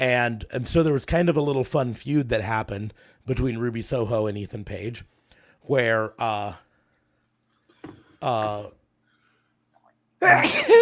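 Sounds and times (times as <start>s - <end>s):
speech: 0.0s - 6.6s, 7.8s - 8.8s, 10.2s - 10.8s
sneeze: 10.2s - 10.8s.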